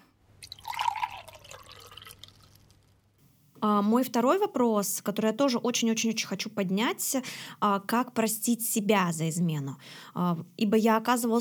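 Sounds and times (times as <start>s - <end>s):
pouring water: 0.4s - 2.8s
speech: 3.6s - 11.3s.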